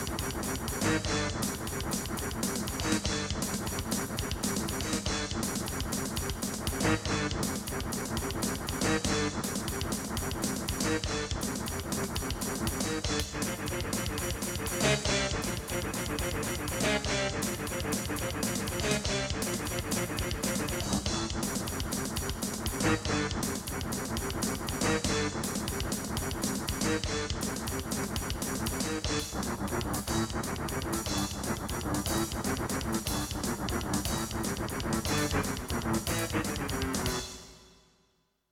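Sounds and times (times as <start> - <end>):
sound card music playback: 0.0 - 37.7.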